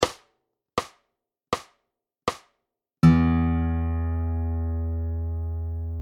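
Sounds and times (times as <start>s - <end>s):
slow fingerpicking patterns: 3.0s - 6.0s.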